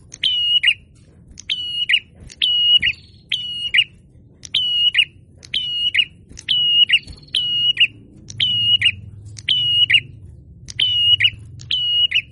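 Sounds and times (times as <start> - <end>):
prinia song of high flat whistles with burry endings: 0.1 - 12.3.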